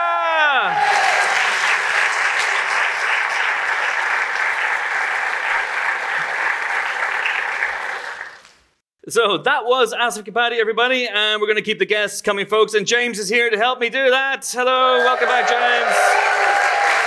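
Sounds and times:
audience applauding a guest: 0.6 - 8.5, 15.0 - 17.0
speech: 9.1 - 16.3.

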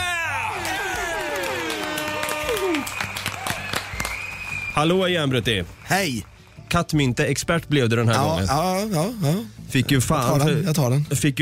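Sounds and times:
applause sound effect: 0.5 - 7.1
speech: 4.8 - 11.4.

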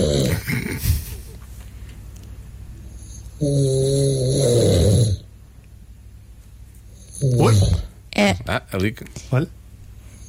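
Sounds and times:
person snoring: 0.0 - 1.0, 3.0 - 5.2, 7.0 - 7.9
speech: 3.4 - 3.8, 8.8 - 9.6.

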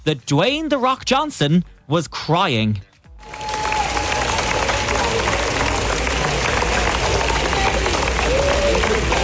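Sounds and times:
speech: 0.0 - 3.5
long standing ovation applause from a large crowd: 3.2 - 9.2.

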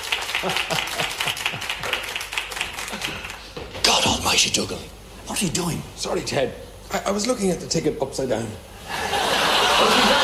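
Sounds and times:
audience round of applause: 0.0 - 3.5
laughter: 0.3 - 2.2, 8.8 - 10.2
speech: 0.4 - 2.0, 4.3 - 8.7.

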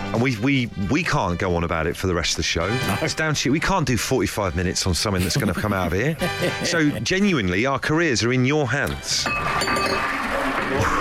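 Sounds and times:
speech: 0.1 - 11.0
laughter: 5.0 - 7.4
pint glass knocked over: 9.2 - 10.7.

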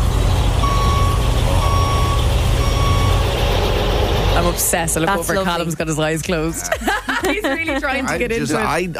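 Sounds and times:
vehicle reversing warning beeps: 0.2 - 4.4
laughter: 4.5 - 8.9
speech: 4.6 - 8.9.

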